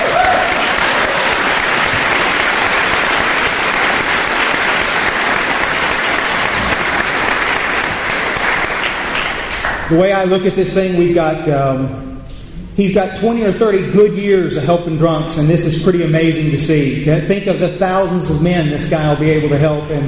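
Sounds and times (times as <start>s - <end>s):
crowd applauding: 0.0s - 10.1s
speech: 9.9s - 12.1s, 12.8s - 20.0s.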